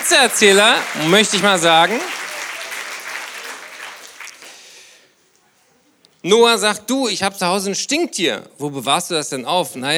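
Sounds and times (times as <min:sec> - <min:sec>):
audience applause: 0:00.0 - 0:04.9
speech: 0:00.1 - 0:02.2, 0:06.2 - 0:09.9.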